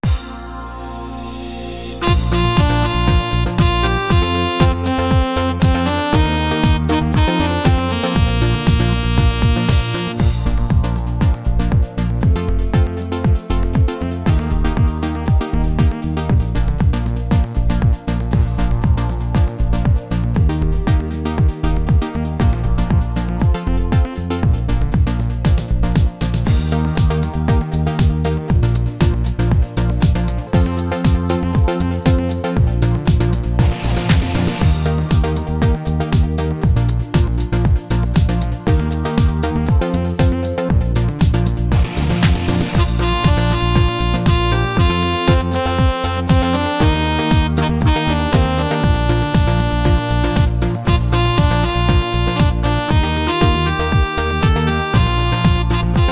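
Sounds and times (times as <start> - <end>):
instrumental music for singing and dancing: 0.0 - 56.1.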